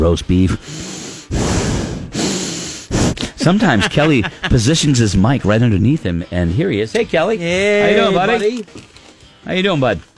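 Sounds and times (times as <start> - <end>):
speech: 0.0 - 2.0, 3.4 - 10.1
person snorting mouth noises imitating a horse: 0.7 - 3.4
laughter: 3.2 - 5.6.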